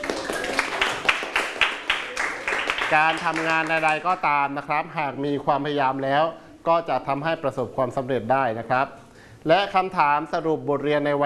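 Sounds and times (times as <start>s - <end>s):
applause: 0.0s - 4.2s
speech: 2.9s - 11.2s.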